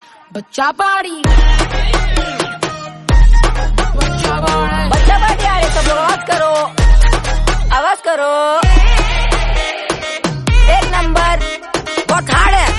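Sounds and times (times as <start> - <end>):
background music: 0.0 - 12.7.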